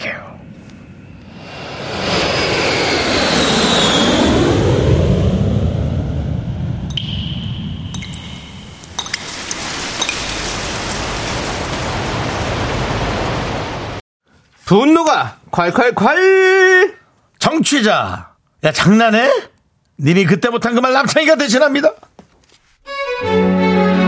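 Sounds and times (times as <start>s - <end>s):
jet airliner taking off: 0.8s - 14.0s
speech: 14.7s - 22.1s, 23.2s - 23.9s.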